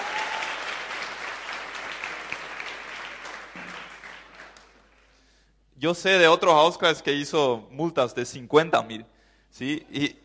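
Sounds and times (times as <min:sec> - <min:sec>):
audience applause: 0:00.0 - 0:05.0
speech: 0:05.8 - 0:10.2.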